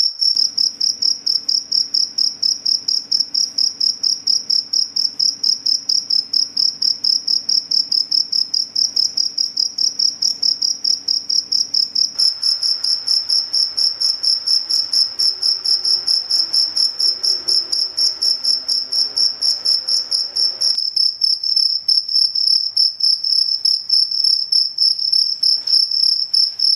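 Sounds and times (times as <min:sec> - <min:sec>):
cricket chirping: 0:00.0 - 0:26.7.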